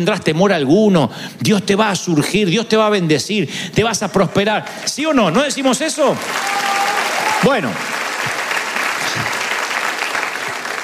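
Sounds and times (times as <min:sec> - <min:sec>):
speech: 0:00.0 - 0:06.8, 0:07.4 - 0:07.9
audience applause: 0:06.1 - 0:10.8.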